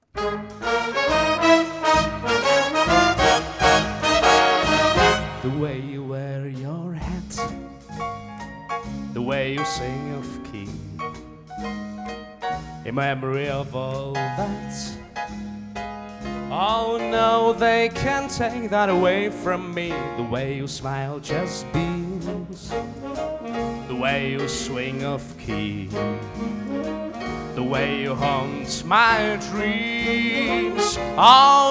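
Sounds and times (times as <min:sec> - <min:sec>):
big band: 0:00.0 - 0:31.7.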